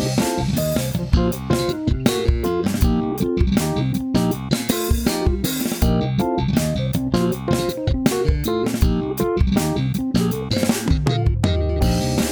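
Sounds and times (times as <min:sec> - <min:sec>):
electric bass slap funk: 0:00.0 - 0:12.2.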